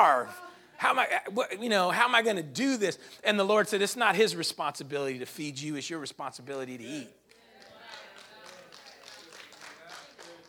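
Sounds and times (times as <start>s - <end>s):
speech: 0.0s - 7.2s
light golf clap: 7.3s - 10.4s.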